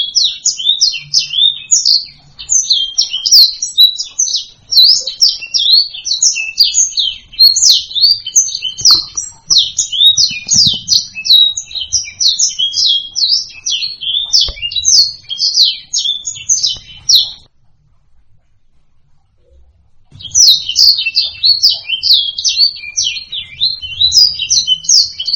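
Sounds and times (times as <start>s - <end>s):
blacksang bird chirping: 0.0s - 17.9s, 19.1s - 25.3s.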